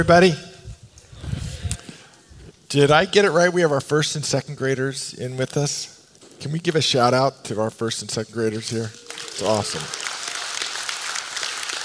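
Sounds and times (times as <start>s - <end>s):
speech: 0.0s - 0.5s, 2.7s - 10.0s
audience clapping: 8.9s - 11.8s.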